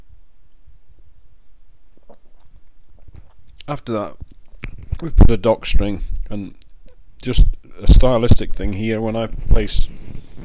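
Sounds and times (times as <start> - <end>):
person sipping beer: 2.0 - 3.7
speech: 3.7 - 4.2, 5.0 - 6.6, 7.2 - 10.0.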